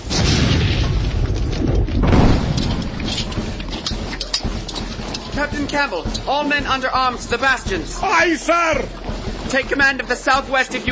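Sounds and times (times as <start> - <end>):
gunfire barrage in an audio drama: 0.1 - 4.1
speech: 5.6 - 10.9.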